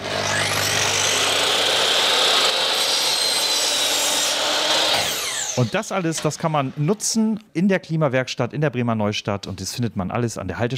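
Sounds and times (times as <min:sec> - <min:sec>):
power saw cutting scrap wood: 0:00.0 - 0:07.3
speech: 0:05.6 - 0:10.7.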